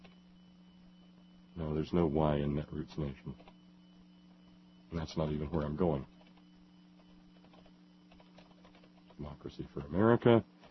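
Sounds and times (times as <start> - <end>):
low electrical hum: 0.0 - 10.6
speech: 1.6 - 3.5, 4.9 - 6.1, 9.2 - 10.6
typing on a computer keyboard: 6.1 - 10.0.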